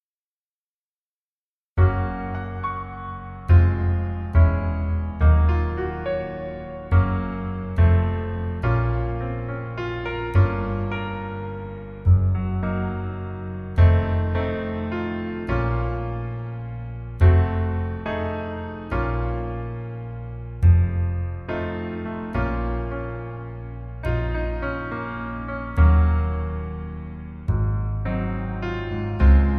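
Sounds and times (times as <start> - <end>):
piano music: 1.8 - 29.5.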